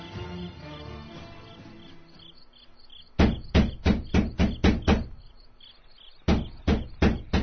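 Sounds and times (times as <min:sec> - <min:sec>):
knocking on a door: 0:03.2 - 0:05.3, 0:06.2 - 0:07.4.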